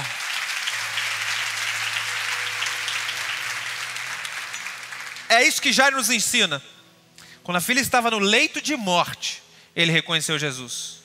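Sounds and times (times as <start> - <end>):
audience applause: 0.0 - 5.9
speech: 5.3 - 6.7, 7.4 - 11.0.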